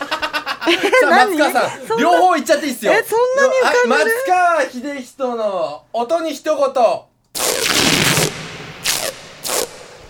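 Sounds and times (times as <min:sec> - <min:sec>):
laughter: 0:00.0 - 0:02.8
speech: 0:00.7 - 0:07.1
line tape peeling off gym floor: 0:07.4 - 0:09.9.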